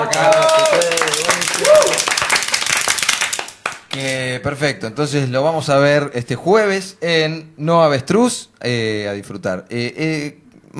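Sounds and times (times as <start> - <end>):
speech: 0.0 - 0.5, 4.0 - 10.7
crowd clapping for a musician after his performance: 0.0 - 4.2.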